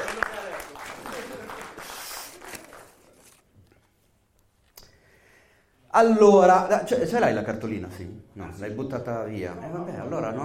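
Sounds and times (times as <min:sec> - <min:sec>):
audience applause: 0:00.0 - 0:03.2
speech: 0:06.0 - 0:10.4.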